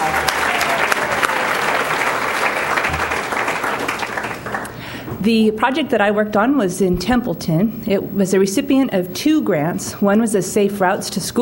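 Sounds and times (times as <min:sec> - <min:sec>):
audience applause: 0:00.0 - 0:04.9
speech: 0:05.2 - 0:11.4.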